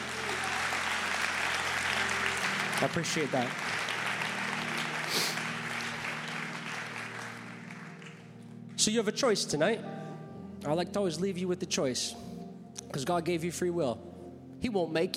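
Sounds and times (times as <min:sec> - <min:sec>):
small audience clapping: 0:00.0 - 0:08.5
speech: 0:02.8 - 0:03.7, 0:08.8 - 0:10.0, 0:10.6 - 0:12.3, 0:12.9 - 0:15.1.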